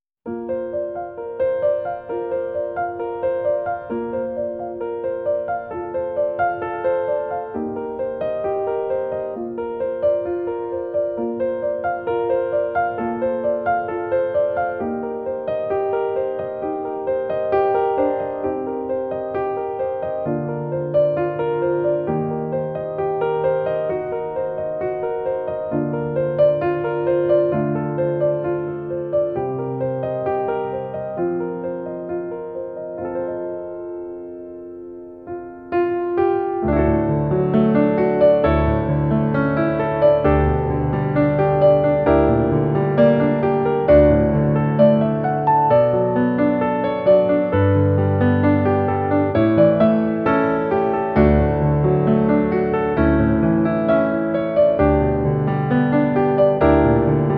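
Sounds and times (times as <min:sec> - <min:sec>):
music: 0:00.2 - 0:57.3.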